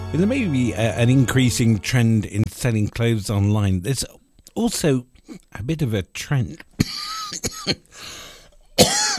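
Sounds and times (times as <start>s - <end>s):
speech: 0.1s - 9.1s
coughing and throat clearing: 6.8s - 7.9s, 8.8s - 9.1s.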